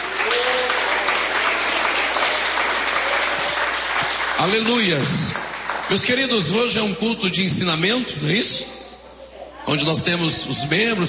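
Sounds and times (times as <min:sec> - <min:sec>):
audience applause: 0:00.0 - 0:06.2
speech: 0:04.4 - 0:08.8, 0:09.6 - 0:11.0.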